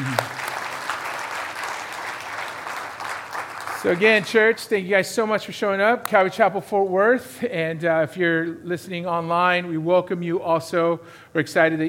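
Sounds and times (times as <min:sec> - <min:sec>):
church audience applause: 0:00.0 - 0:04.4
speech: 0:03.8 - 0:11.8.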